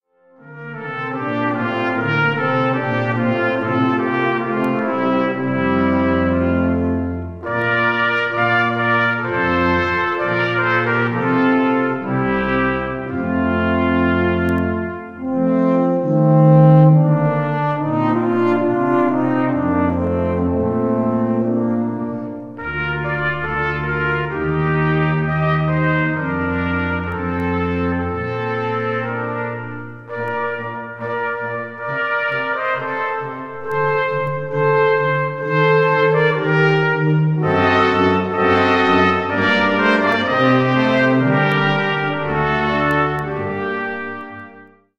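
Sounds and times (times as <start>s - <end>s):
wind ensemble playing an andantino in F major: 0.4s - 44.9s.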